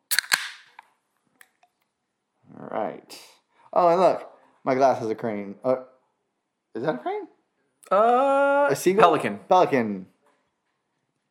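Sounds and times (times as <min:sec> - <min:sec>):
drink can or bottle cracked open: 0:00.0 - 0:00.9
speech: 0:02.8 - 0:05.9, 0:06.8 - 0:10.1.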